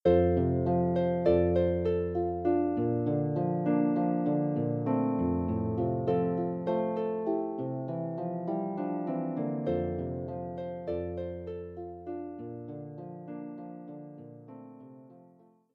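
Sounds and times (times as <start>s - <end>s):
harp: 0.0s - 15.2s.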